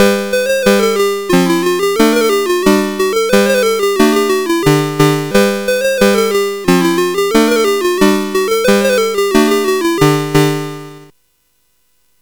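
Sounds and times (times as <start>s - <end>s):
SID CSG8580R5 chip game music: 0.0s - 11.1s.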